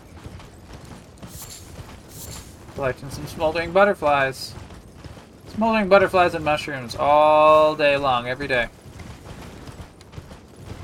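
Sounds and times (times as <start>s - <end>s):
horse hooves clip-clopping while riding: 0.0s - 10.8s
creaking hiss: 1.2s - 2.9s
speech: 2.8s - 4.6s, 5.6s - 8.8s.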